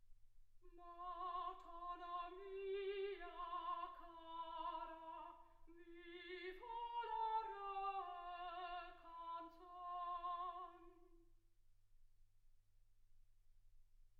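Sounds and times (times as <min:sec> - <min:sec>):
soprano singing: 0:00.6 - 0:11.2.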